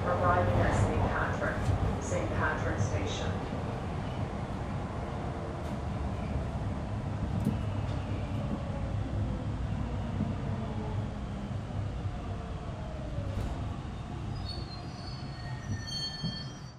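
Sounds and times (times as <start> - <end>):
subway station sounds: 0.0 - 16.7.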